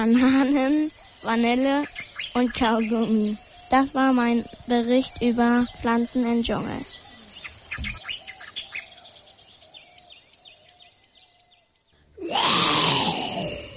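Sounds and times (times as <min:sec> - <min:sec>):
speech: 0:00.0 - 0:07.0
birds chirping: 0:00.0 - 0:13.7
insects buzzing: 0:00.0 - 0:13.7
person imitating a lion's roar: 0:12.2 - 0:13.7.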